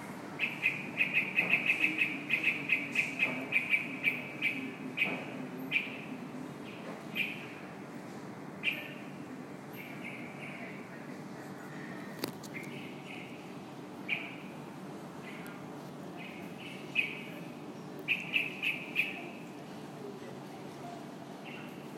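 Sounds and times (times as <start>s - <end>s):
bulbul chirping calls: 0.4s - 7.6s, 8.6s - 9.1s, 9.7s - 10.8s, 12.4s - 14.6s, 16.2s - 19.5s, 21.4s - 21.9s.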